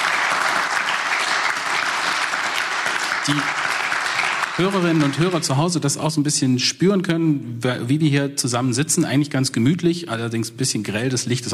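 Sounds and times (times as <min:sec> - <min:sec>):
live audience applauding at a science and innovation event in Tübingen: 0:00.0 - 0:05.7
speech: 0:03.2 - 0:03.6, 0:04.6 - 0:11.5.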